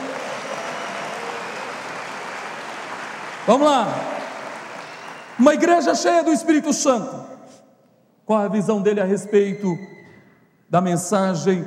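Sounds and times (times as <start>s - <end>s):
audience applause: 0.0s - 5.9s
speech: 3.4s - 4.2s, 5.4s - 7.4s, 8.3s - 9.9s, 10.7s - 11.6s.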